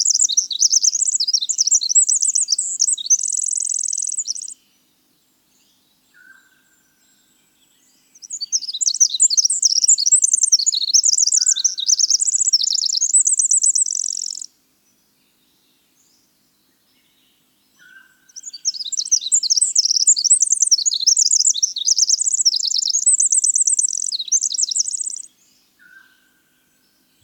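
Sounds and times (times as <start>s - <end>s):
winter wren singing: 0.0s - 4.6s, 8.1s - 14.5s, 17.8s - 26.0s.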